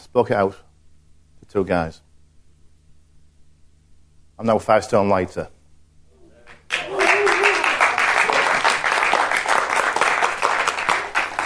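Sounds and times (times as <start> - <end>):
speech: 0.1 - 0.7, 1.5 - 2.1, 4.4 - 5.6
audience applause: 6.5 - 11.4.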